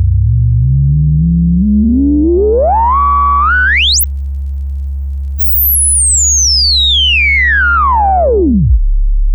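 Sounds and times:
Behringer 110 VCO triangle wave with range and filter sweeps: 0.2s - 4.1s, 5.4s - 9.2s.

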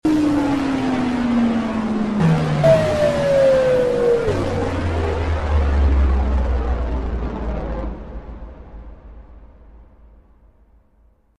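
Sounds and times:
aggressive effect: 0.1s - 8.8s.

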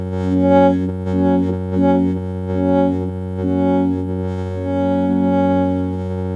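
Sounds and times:
Striso board notes retriggering: 0.2s - 6.2s.

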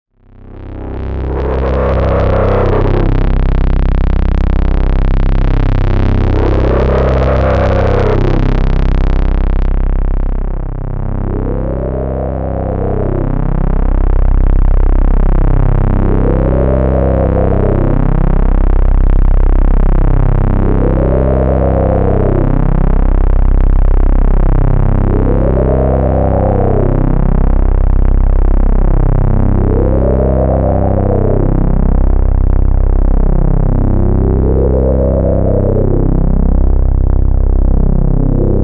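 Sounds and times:
Moog Moogerfooger MF 101 Screamer distortion effect sound: 0.2s - 38.6s.

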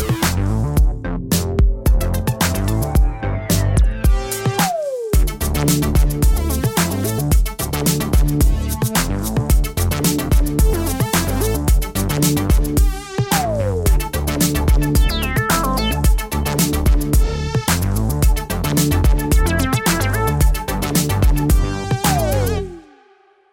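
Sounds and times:
soul music: 0.2s - 12.5s, 13.3s - 22.9s.

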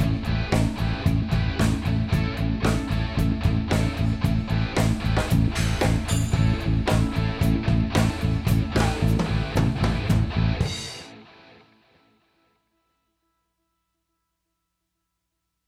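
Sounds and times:
song processed through a Fairchild 670 compressor: 0.0s - 11.2s.

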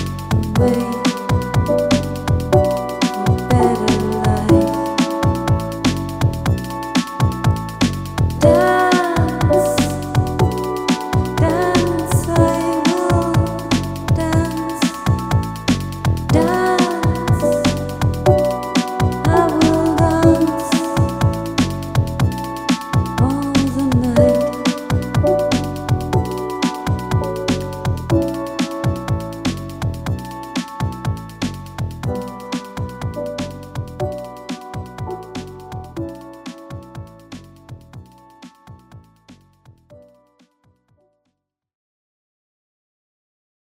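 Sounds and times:
person singing: 0.0s - 5.5s, 8.4s - 15.5s, 16.3s - 21.8s, 23.2s - 26.9s
M8 tracker music: 0.0s - 38.4s.

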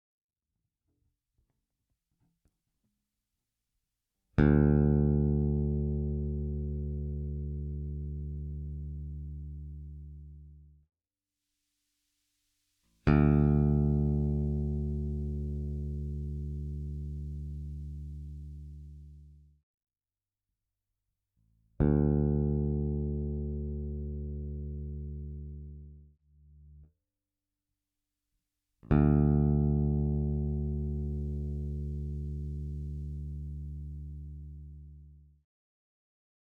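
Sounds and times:
Warwick Gnome i Pro V2 bass amplifier with high EQ: 4.4s - 10.8s, 13.0s - 19.6s, 21.8s - 26.9s, 28.9s - 35.4s.

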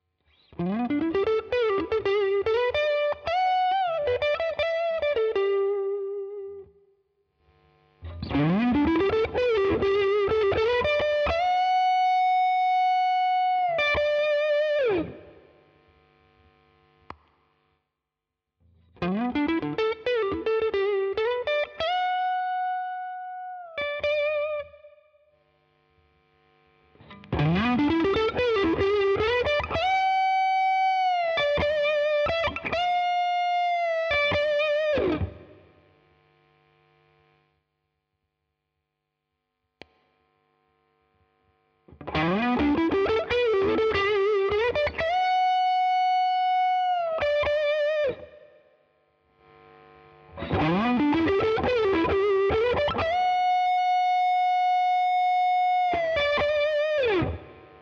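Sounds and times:
Strat electric guitar: 0.0s - 6.8s, 8.0s - 15.6s, 18.8s - 25.1s, 27.0s - 35.8s, 41.9s - 48.8s, 49.4s - 57.8s.

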